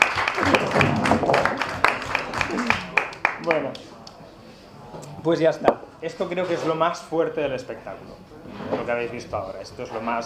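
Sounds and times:
audience applause: 0.0s - 3.8s
speech: 5.2s - 10.2s.

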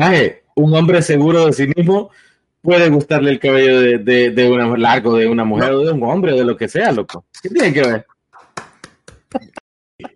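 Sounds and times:
speech: 0.0s - 8.1s
hands clapping: 7.7s - 9.6s.

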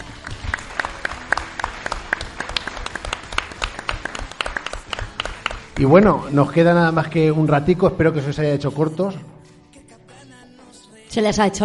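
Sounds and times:
audience applause: 0.0s - 6.1s
speech: 5.8s - 9.3s, 11.1s - 11.6s.

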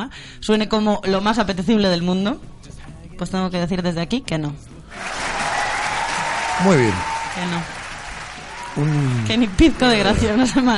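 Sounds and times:
speech: 0.0s - 2.6s, 3.2s - 5.2s, 6.6s - 7.8s, 8.8s - 10.7s
applause: 4.9s - 10.7s.

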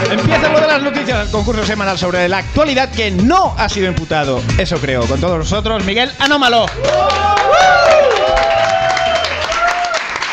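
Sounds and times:
speech: 0.1s - 7.8s
audience applause: 6.7s - 10.3s
cheers and whoops or whistles: 6.8s - 10.3s.

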